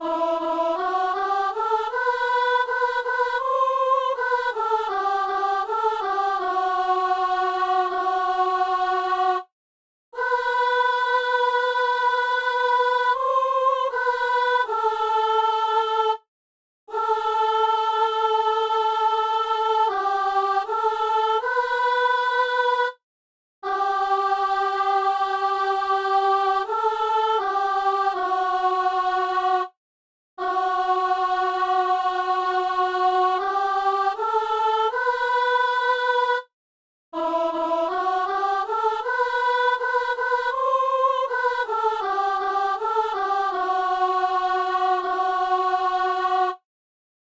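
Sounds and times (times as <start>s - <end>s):
soprano singing a psalm: 0.0s - 9.5s, 10.2s - 16.2s, 16.9s - 23.0s, 23.6s - 29.8s, 30.4s - 36.5s, 37.2s - 46.6s.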